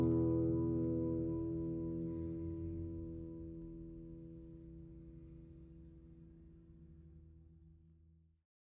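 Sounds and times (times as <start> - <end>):
guitars: 0.0 - 4.9.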